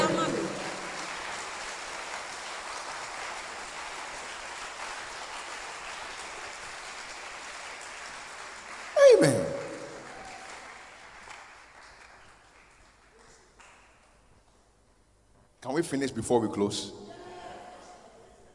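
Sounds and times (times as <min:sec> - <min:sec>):
crowd clapping hands: 0:00.0 - 0:14.3
speech: 0:15.8 - 0:17.0.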